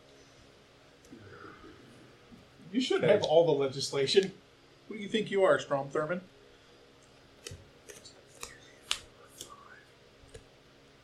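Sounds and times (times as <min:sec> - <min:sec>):
speech: 0:02.7 - 0:06.3
Clowns for Congress board game cards being discarded and drawn: 0:07.4 - 0:09.6.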